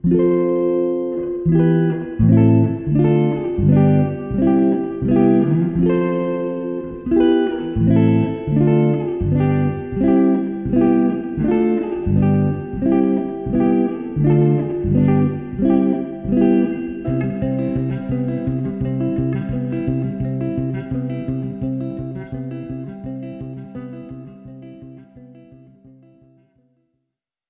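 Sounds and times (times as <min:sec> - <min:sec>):
electric guitar: 0:00.0 - 0:26.6.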